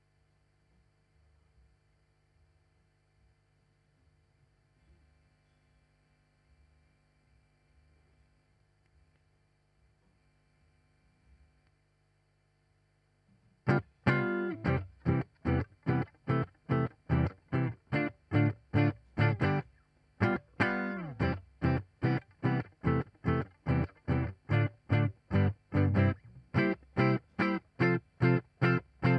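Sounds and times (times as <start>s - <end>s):
guitar: 13.6s - 29.1s.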